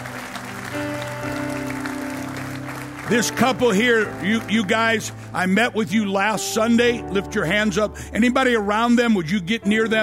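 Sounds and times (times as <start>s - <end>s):
people clapping as an offering of praise: 0.0s - 5.2s
speech: 3.1s - 10.0s.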